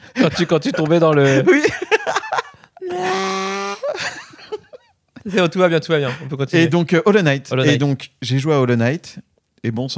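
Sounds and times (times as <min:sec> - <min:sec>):
laughter: 0:00.0 - 0:05.4
speech: 0:00.2 - 0:02.0, 0:02.9 - 0:04.2, 0:05.2 - 0:09.9
voice imitating a howling electric vehicle: 0:02.8 - 0:03.9.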